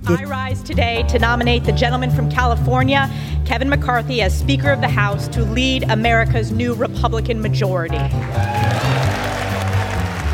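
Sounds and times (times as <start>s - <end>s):
speech: 0.1s - 9.2s
applause from a large crowd in a legislative chamber: 8.1s - 10.3s.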